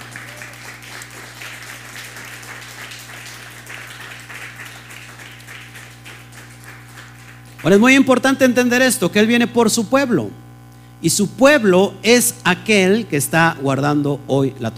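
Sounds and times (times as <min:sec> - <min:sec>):
loud applause: 0:00.0 - 0:07.8
speech: 0:07.6 - 0:14.7.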